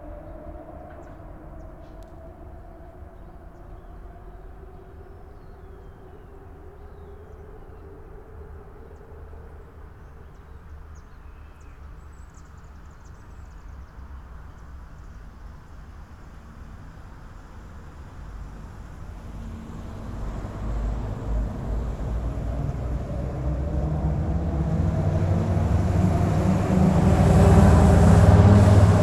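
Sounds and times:
suburban traffic at a traffic light: 14.9s - 29.0s
vehicles crossing a grated bridge: 17.4s - 29.0s.

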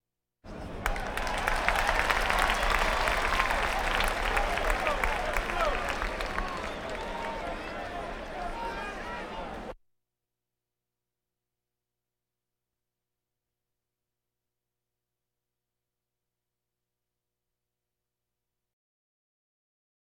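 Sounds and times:
crowds: 0.5s - 9.8s.

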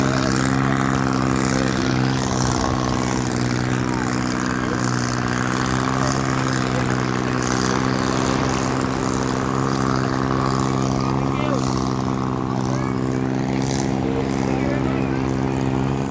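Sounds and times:
boat off a beach: 0.0s - 16.1s.

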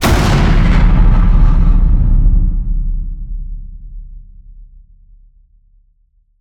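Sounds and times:
distorted cinematic hit: 0.0s - 4.6s.

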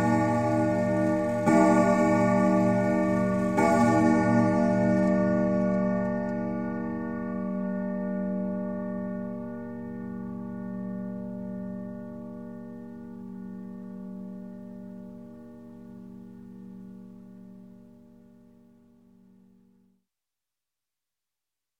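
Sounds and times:
grandfather clock chime striking: 0.0s - 9.2s.

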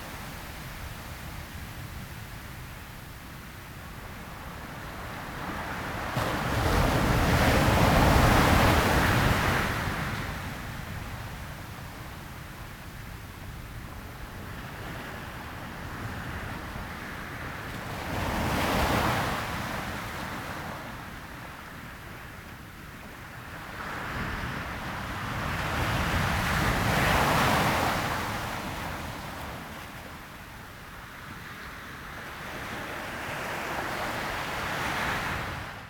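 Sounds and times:
sea at a sandy beach: 0.0s - 35.8s.

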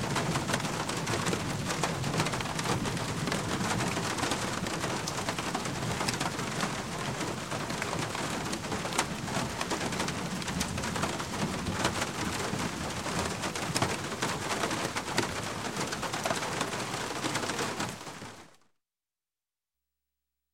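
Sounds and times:
medium rain on a wooden roof: 0.0s - 18.6s.

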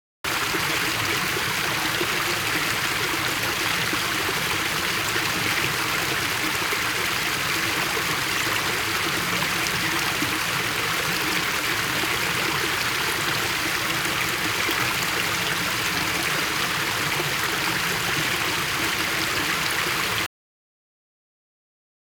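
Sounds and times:
large water stream: 0.3s - 20.3s.

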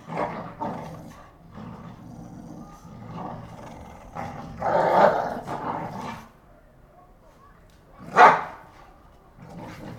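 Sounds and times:
two pit bulls fighting with rasping growls and snarls: 0.0s - 6.4s, 9.3s - 9.9s.

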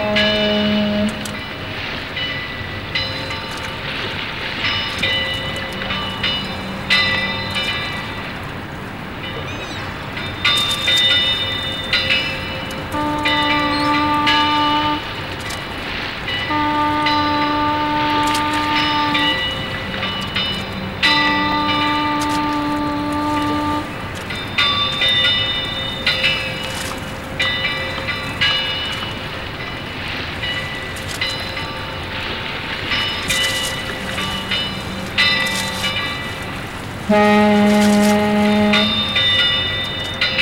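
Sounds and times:
boat in a harbour: 0.0s - 40.4s.

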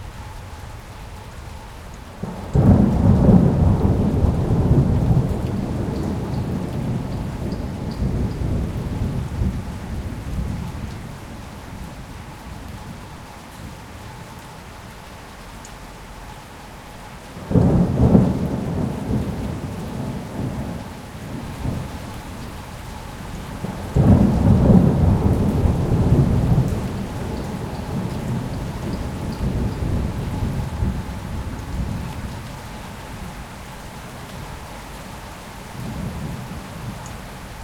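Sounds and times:
storm: 2.2s - 13.8s, 17.4s - 33.4s.

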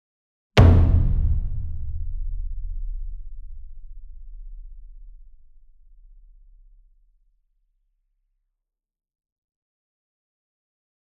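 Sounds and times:
60-inch taiko drum hit with soft beater: 0.6s - 4.6s.

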